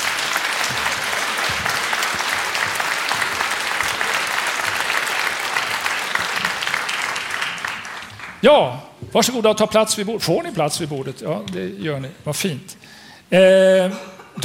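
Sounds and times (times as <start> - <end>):
audience applause welcoming panelists on stage: 0.0 - 8.4
speech: 8.4 - 14.4.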